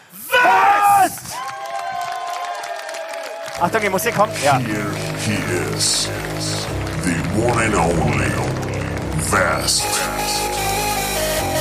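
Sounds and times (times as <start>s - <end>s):
people whooping: 0.2s - 7.6s
crowd applause: 0.6s - 11.6s
speech: 3.6s - 10.8s.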